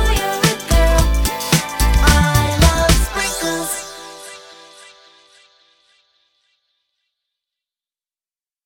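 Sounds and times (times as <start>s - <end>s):
jingle: 0.0s - 6.0s.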